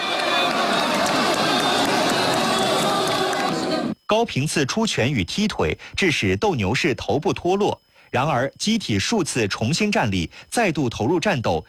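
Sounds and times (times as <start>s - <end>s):
deafening crowd cheering in arena: 0.0s - 4.0s
speech: 4.1s - 11.6s.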